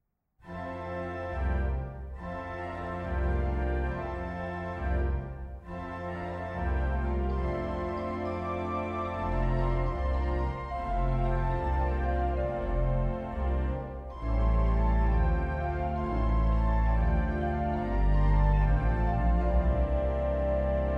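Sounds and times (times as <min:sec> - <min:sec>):
free improvisation music: 0:00.5 - 0:20.9.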